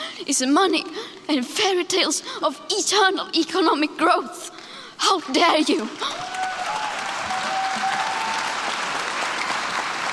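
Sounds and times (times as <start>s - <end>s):
speech: 0.2s - 6.3s
adults cheering: 6.0s - 10.1s.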